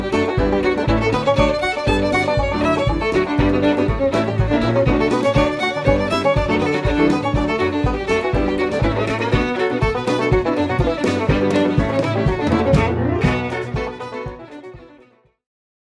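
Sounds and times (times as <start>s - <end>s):
banjo: 0.0s - 15.2s.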